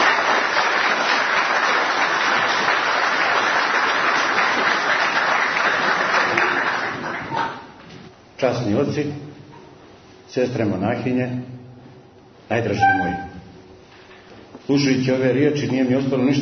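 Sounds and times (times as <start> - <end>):
audience applause greeting an author at a book presentation in a hall: 0.0 - 7.8
speech: 8.4 - 9.3, 10.3 - 11.6, 12.5 - 13.3, 14.7 - 16.4.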